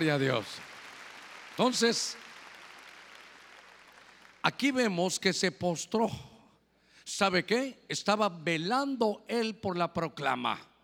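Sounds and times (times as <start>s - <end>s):
speech: 0.0s - 0.7s, 1.6s - 2.2s, 4.4s - 6.3s, 7.1s - 10.7s
audience clapping hands: 0.0s - 4.8s.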